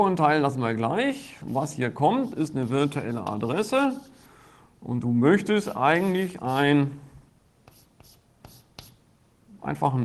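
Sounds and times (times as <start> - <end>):
speech: 0.0 - 4.2, 4.8 - 7.0, 9.6 - 10.0
pen strokes handwriting an address: 1.4 - 4.3, 5.6 - 6.7, 7.6 - 9.0.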